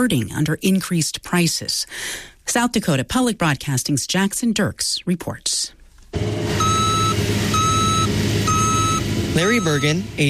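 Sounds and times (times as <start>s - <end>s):
speech: 0.0s - 6.4s, 9.4s - 10.2s
backup alarm beeping: 6.2s - 10.2s
cargo truck engine idling: 6.2s - 10.2s.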